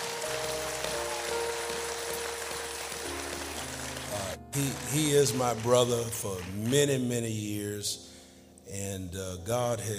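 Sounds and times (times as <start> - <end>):
audience applause: 0.0 - 7.1
speech: 4.5 - 8.1, 8.7 - 9.9.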